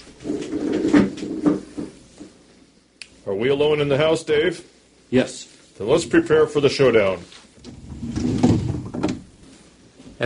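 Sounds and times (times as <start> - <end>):
door opening from a stable into a doctor's office, wooden knocks: 0.3 - 2.3, 7.6 - 9.4
speech: 3.3 - 7.8.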